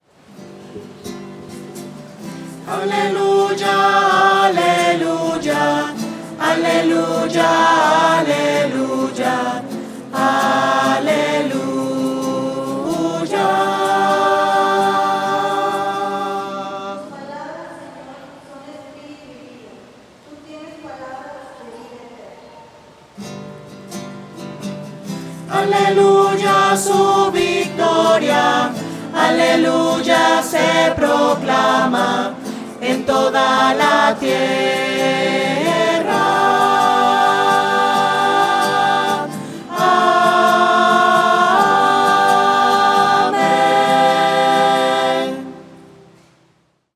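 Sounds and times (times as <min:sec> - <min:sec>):
voices singing hallelujah: 0:02.4 - 0:18.0, 0:25.2 - 0:46.1.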